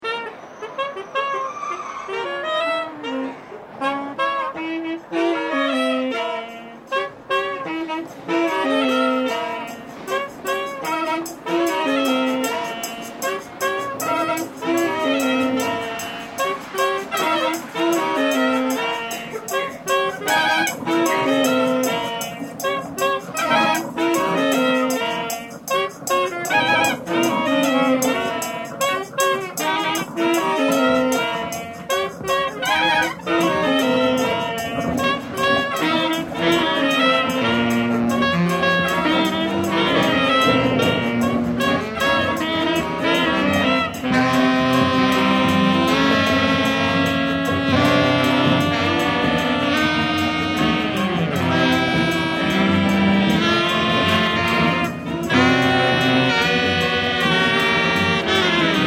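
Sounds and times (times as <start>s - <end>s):
fanfare: 0.0s - 58.8s.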